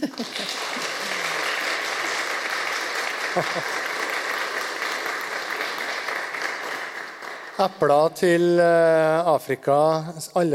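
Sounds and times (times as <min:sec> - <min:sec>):
speech: 0:00.0 - 0:00.6, 0:03.4 - 0:03.8, 0:07.6 - 0:10.5
laughter: 0:00.0 - 0:01.6, 0:03.0 - 0:04.1
audience applause: 0:00.0 - 0:08.1.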